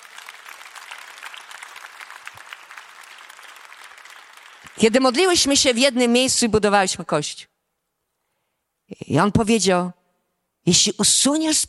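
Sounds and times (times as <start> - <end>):
audience applauding: 0.0 - 5.4
speech: 4.8 - 7.5, 9.0 - 10.0, 10.6 - 11.6.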